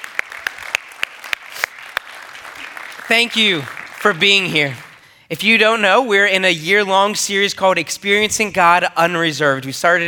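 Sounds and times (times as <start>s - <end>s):
audience applause: 0.0s - 5.0s
speech: 3.1s - 10.0s.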